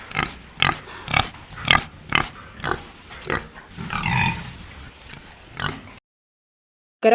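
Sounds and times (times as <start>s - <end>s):
wild boar grunting: 0.0s - 6.0s.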